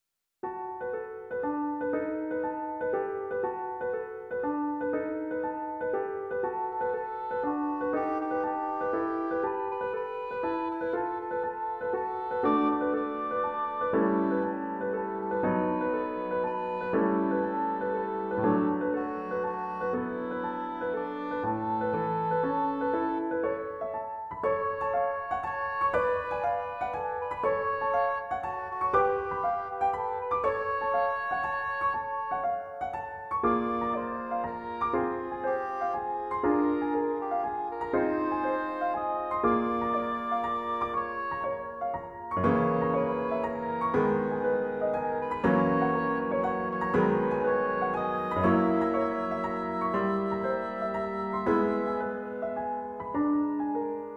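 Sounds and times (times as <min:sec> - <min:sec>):
accompaniment in D: 0:00.8 - 0:54.1.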